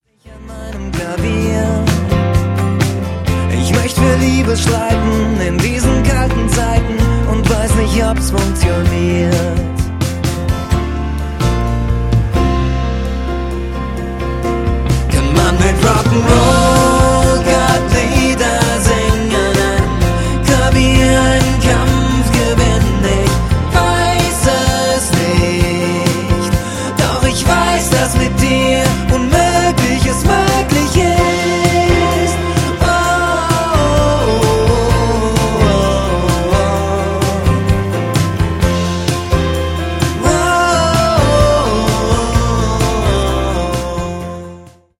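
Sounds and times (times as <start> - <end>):
piano: 0.0 - 44.9.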